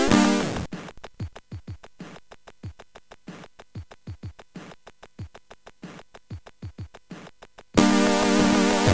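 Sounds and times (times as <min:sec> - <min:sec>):
chiptune music on CSG8580R5 SID sound chip: 0:00.0 - 0:00.7, 0:07.8 - 0:08.9.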